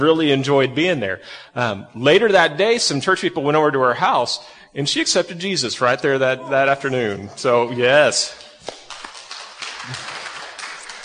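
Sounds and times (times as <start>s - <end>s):
speech: 0.0s - 8.8s, 9.8s - 10.2s
sparse tepid applause: 8.1s - 11.0s.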